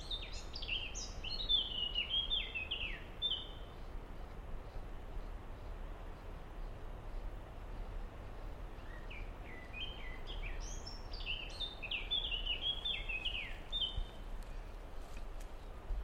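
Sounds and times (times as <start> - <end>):
common blackbird singing: 0.0 - 3.6, 8.7 - 14.6
continuous noise: 0.0 - 16.0.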